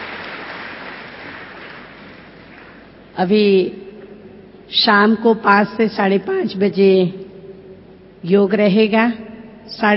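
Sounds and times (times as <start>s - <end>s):
audience applause: 0.0s - 2.9s
speech: 3.2s - 3.8s, 4.7s - 7.2s, 8.2s - 9.9s.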